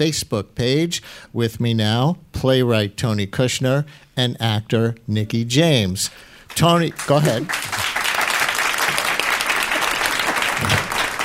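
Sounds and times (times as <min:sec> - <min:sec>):
speech: 0:00.0 - 0:07.7
applause: 0:06.5 - 0:11.2.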